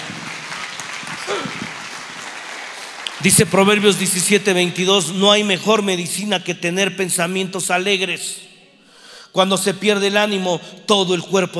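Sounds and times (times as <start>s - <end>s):
church audience applause: 0.0s - 4.0s
speech: 1.3s - 1.6s, 3.2s - 8.5s, 9.3s - 11.5s.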